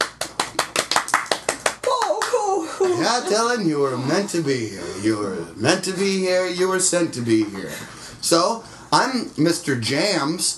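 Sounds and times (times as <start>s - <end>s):
children clapping: 0.0s - 2.4s
speech: 2.9s - 10.5s.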